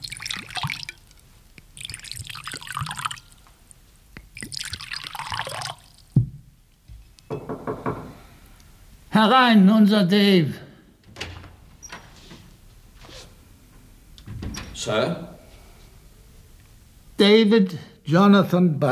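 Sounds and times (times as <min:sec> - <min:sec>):
drinks poured into glasses for a toast: 0:00.0 - 0:03.5, 0:04.2 - 0:06.2
glass clink: 0:07.3 - 0:07.7
speech: 0:09.2 - 0:10.6, 0:14.9 - 0:15.3, 0:17.2 - 0:18.9.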